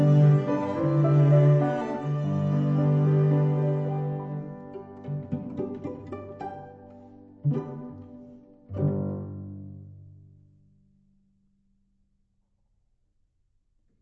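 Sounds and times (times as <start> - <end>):
piano quartet: 0.0 - 10.1.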